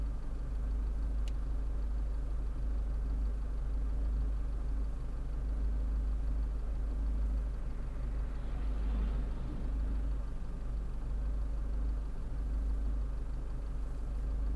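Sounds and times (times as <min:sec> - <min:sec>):
Renault Logan car engine idling: 0:00.0 - 0:14.5.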